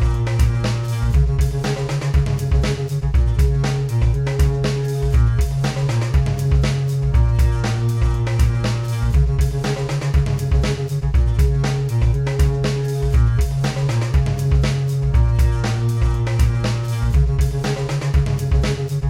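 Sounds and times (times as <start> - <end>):
ebow guitar song: 0.0 - 19.0.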